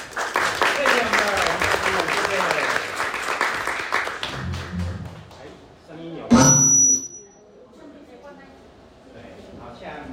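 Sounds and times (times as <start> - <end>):
warm audience applause: 0.0 - 5.6.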